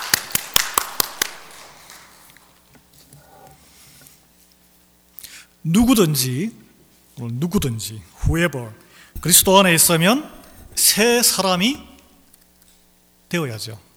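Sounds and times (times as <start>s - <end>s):
audience clapping in unison: 0.0s - 2.6s
speech: 5.6s - 6.6s, 7.2s - 11.9s, 13.3s - 13.9s.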